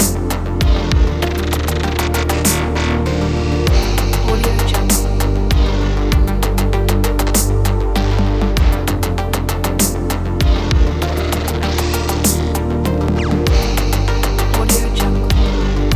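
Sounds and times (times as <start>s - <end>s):
relaxing electronic ambient music: 0.0s - 15.9s.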